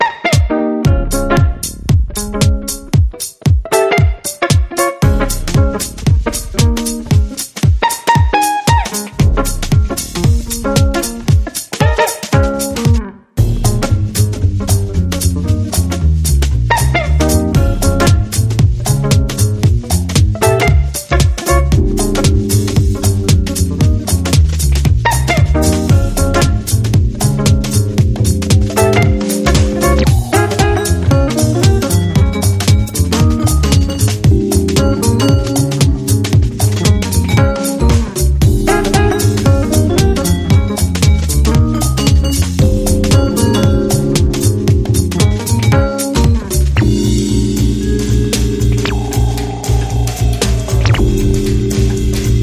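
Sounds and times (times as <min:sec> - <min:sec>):
instrumental jazz: 0:00.2 - 0:52.4.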